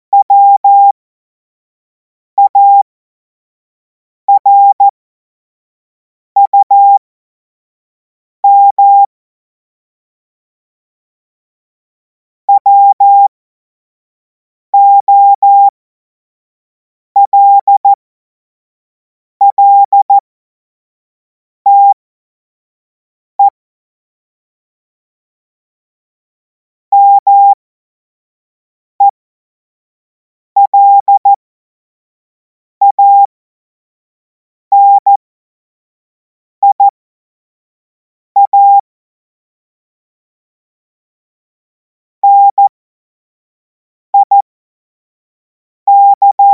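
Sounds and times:
CW Morse code beeps: 0.2s - 0.9s, 2.4s - 2.8s, 4.3s - 4.8s, 6.4s - 7.0s, 8.4s - 9.1s, 12.5s - 13.3s, 14.8s - 15.7s, 17.2s - 18.0s, 19.5s - 20.2s, 21.7s - 22.0s, 26.9s - 27.6s, 30.6s - 31.4s, 32.8s - 33.3s, 34.7s - 35.2s, 36.6s - 36.9s, 38.4s - 38.8s, 42.2s - 42.7s, 44.2s - 44.5s, 45.9s - 46.5s.

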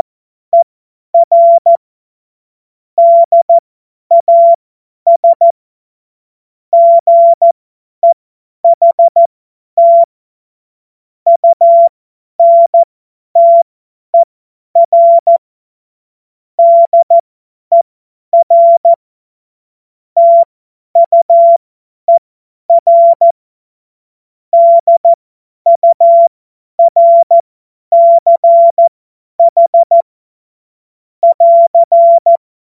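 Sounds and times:
CW Morse code beeps: 0.0s - 1.8s, 3.0s - 5.5s, 6.8s - 10.1s, 11.3s - 13.6s, 14.8s - 15.4s, 16.6s - 17.8s, 18.4s - 19.0s, 20.2s - 23.4s, 24.6s - 30.0s, 31.2s - 32.4s.

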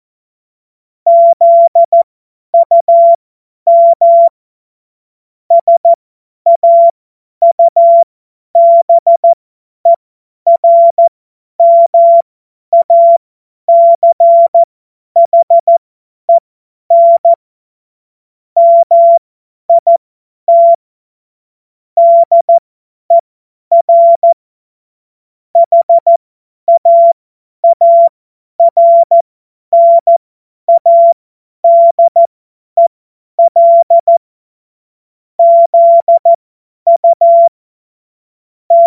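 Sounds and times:
CW Morse code beeps: 1.1s - 4.3s, 5.5s - 12.2s, 12.8s - 15.8s, 16.9s - 17.4s, 18.6s - 20.8s, 22.0s - 24.4s, 25.6s - 34.2s, 35.4s - 37.6s.

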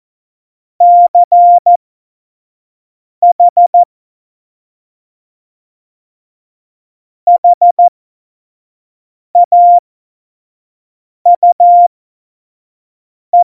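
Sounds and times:
CW Morse code at tempo 70: 0.8s - 1.8s, 3.2s - 3.9s, 7.3s - 7.9s, 9.4s - 9.8s, 11.3s - 11.9s.

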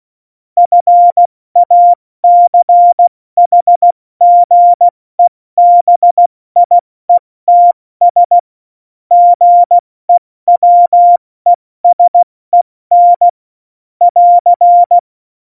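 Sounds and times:
CW Morse code beeps: 0.6s - 6.8s, 7.5s - 8.4s, 9.1s - 11.2s, 11.8s - 13.4s, 14.1s - 15.0s.

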